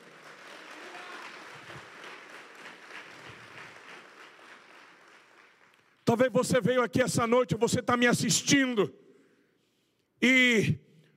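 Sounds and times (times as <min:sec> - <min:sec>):
audience applauding: 0:00.0 - 0:06.0
speech: 0:06.1 - 0:09.0, 0:10.2 - 0:10.8.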